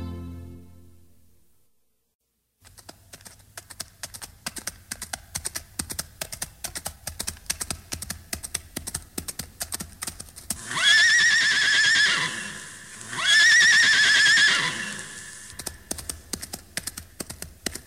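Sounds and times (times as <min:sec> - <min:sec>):
horse hooves clip-clopping: 0:02.6 - 0:17.8
horse whinnying: 0:10.6 - 0:15.7.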